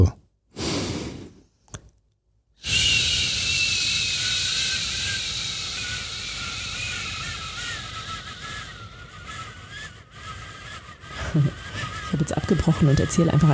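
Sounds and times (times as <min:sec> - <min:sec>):
speech: 0:00.0 - 0:00.2, 0:11.4 - 0:11.6, 0:12.2 - 0:13.5
long slow exhalation in a breathing exercise: 0:00.6 - 0:01.4, 0:02.6 - 0:12.1
thin whistling tones: 0:02.6 - 0:13.5.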